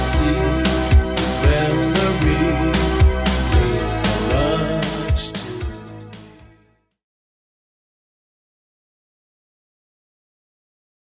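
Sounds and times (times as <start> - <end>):
1980s style remix music at 115 bpm: 0.0 - 7.0.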